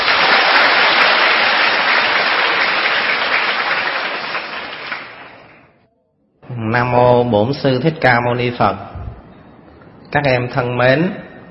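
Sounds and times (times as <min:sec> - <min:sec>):
audience applause: 0:00.0 - 0:05.7
speech: 0:06.6 - 0:08.9, 0:10.1 - 0:11.2.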